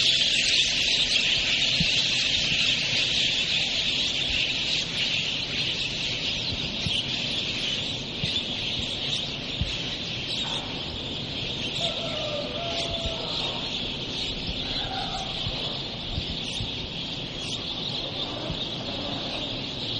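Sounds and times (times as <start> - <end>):
birds in November: 0.0 - 19.9.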